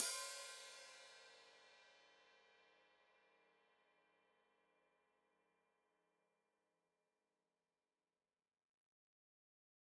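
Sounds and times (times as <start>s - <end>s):
open hi-hat played with foot: 0.0s - 1.4s.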